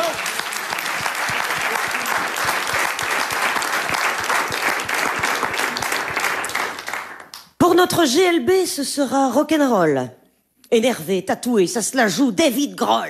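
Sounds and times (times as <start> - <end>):
applause: 0.0 - 7.6
speech: 7.8 - 13.0.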